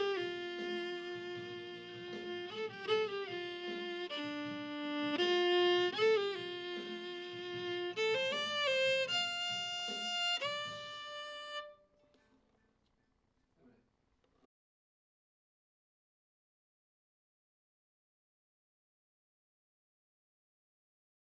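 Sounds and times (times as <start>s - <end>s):
violin: 0.0s - 12.3s.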